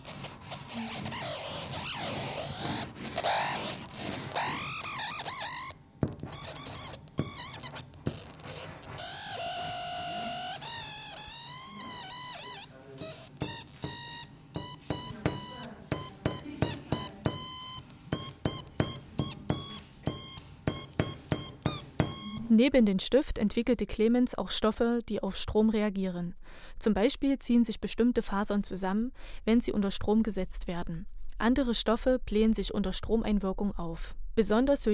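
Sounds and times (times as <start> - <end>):
rapid bursts of bright electronic bleeps and squeaks: 0.0 - 16.4, 17.0 - 22.5
speech: 22.6 - 34.9.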